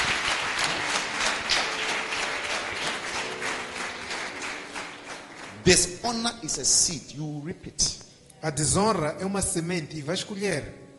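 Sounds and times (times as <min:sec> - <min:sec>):
audience clapping for a boy: 0:00.0 - 0:06.9
speech: 0:05.7 - 0:10.8.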